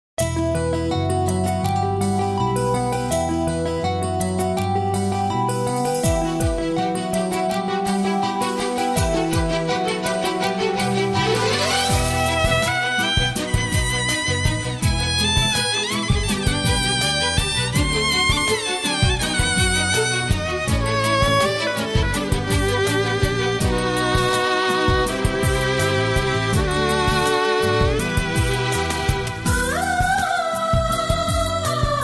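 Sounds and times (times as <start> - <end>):
devotional karaoke music: 0.2 - 32.0.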